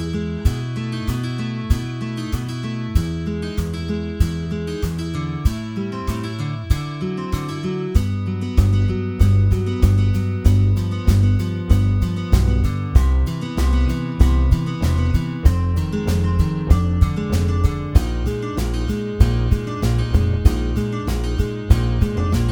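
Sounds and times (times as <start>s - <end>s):
bass: 0.0s - 22.5s
drums: 0.0s - 22.5s
guitar: 0.0s - 22.5s.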